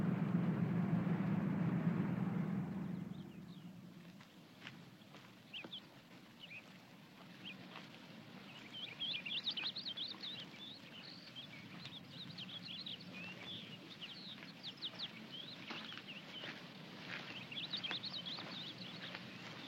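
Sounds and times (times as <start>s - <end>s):
low rumble and hiss of outdoor noise: 0.0s - 19.6s
finch singing in twittering bursts: 8.4s - 19.6s.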